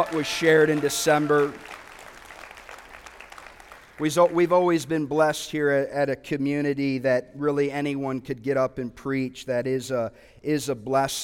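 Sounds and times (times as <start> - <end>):
speech: 0.0 - 1.8, 4.0 - 11.2
audience applause: 0.0 - 4.4.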